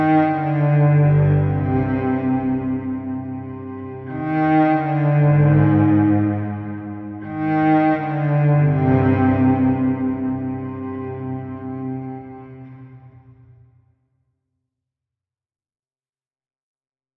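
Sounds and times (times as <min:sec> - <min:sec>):
cello: 0:00.0 - 0:13.7.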